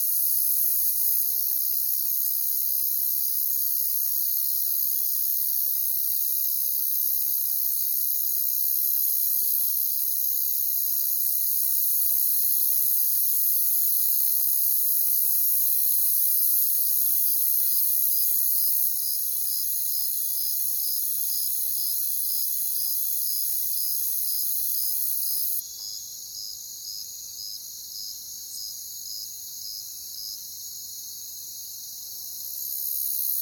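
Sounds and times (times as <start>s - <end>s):
cricket chorus: 0.0s - 33.4s.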